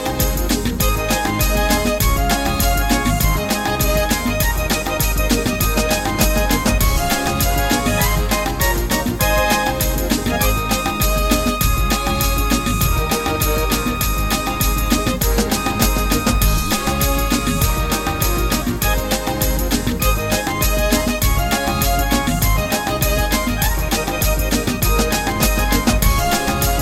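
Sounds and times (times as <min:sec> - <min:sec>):
zydeco music: 0:00.0 - 0:26.8.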